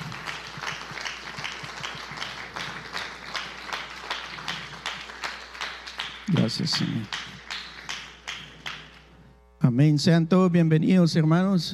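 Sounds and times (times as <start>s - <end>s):
audience clapping: 0.0s - 9.2s
speech: 6.4s - 7.2s, 9.7s - 11.7s.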